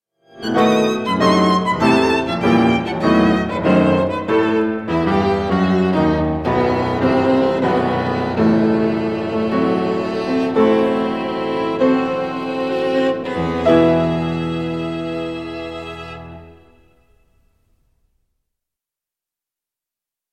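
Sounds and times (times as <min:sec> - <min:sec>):
violin and piano sonata in E minor: 0:00.2 - 0:17.2.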